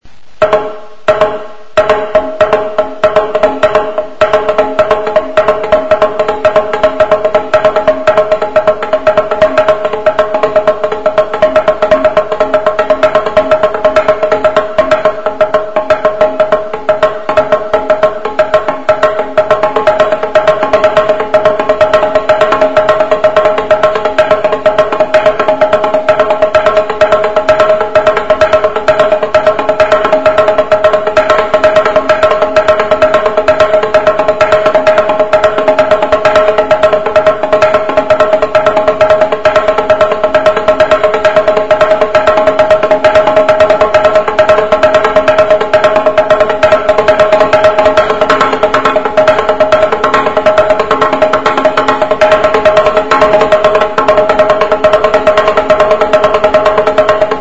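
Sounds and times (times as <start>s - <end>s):
txalaparta classic rhythm: 0.2s - 57.4s.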